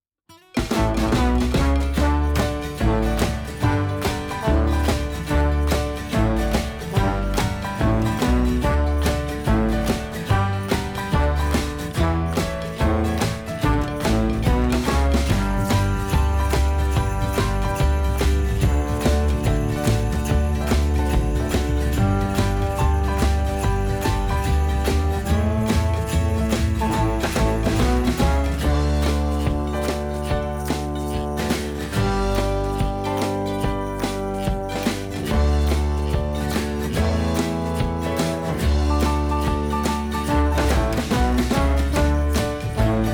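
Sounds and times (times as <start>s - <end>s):
background music: 0.6s - 43.1s.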